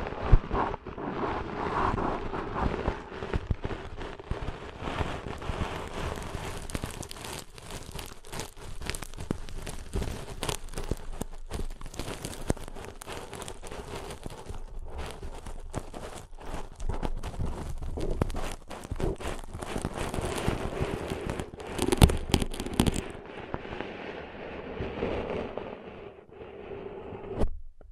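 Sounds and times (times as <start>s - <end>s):
ear cleaning scratchy crackles and rustles: 0.0s - 26.8s
sharp clicks and pops: 2.6s - 23.8s.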